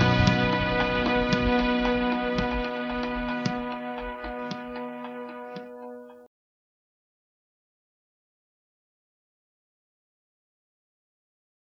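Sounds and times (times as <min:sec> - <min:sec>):
instrumental music: 0:00.0 - 0:06.3.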